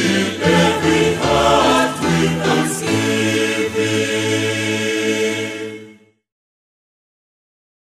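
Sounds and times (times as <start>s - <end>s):
national anthem sung in English: 0.0s - 6.0s.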